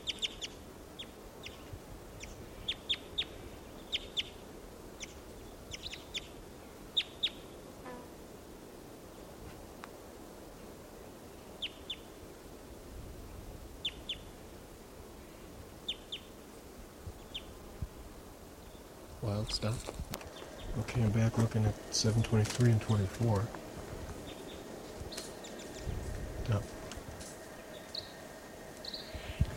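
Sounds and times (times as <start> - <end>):
wild bird calling with short high-pitched chirps: 0.0 - 4.4, 5.0 - 7.6, 20.2 - 29.5
steady low rumble: 16.9 - 29.5
speech: 19.4 - 20.2, 20.8 - 23.6.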